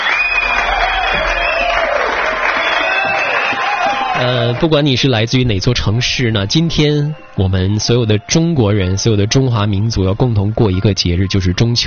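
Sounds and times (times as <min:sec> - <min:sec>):
applause: 0:00.0 - 0:05.1
crowd cheering: 0:00.0 - 0:05.4
speech: 0:04.2 - 0:11.8.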